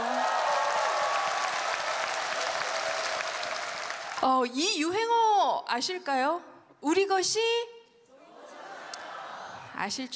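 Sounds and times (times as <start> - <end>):
audience applause: 0.0 - 4.2
speech: 4.2 - 7.7, 9.8 - 10.1.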